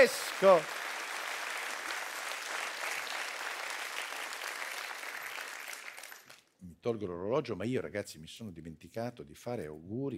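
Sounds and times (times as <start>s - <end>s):
speech: 0.0s - 0.8s, 6.8s - 10.1s
audience applause: 0.0s - 6.4s.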